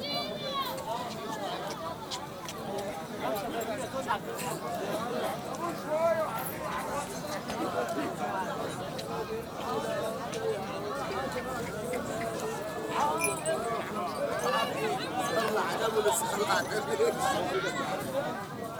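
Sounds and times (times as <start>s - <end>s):
Arab market outdoor ambience with people: 0.0s - 18.7s.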